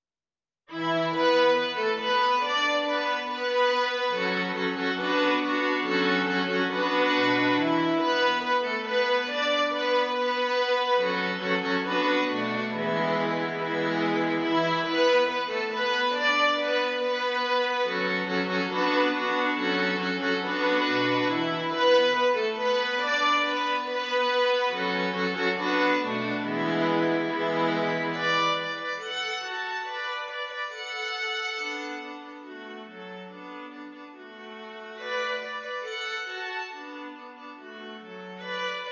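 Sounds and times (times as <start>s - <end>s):
young string quartet: 0.7s - 38.8s.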